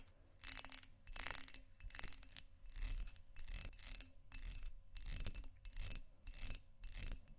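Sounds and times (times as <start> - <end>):
textured glass scratching: 0.0 - 7.2.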